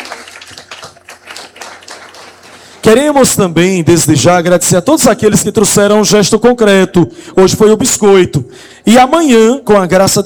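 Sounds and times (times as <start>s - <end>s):
faint clapping at a church gathering: 0.0s - 2.8s
speech: 2.9s - 10.2s.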